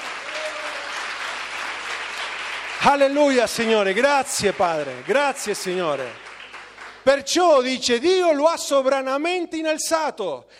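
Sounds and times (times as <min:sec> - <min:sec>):
congregation applause in church: 0:00.0 - 0:07.7
speech: 0:02.8 - 0:06.2, 0:07.0 - 0:10.5.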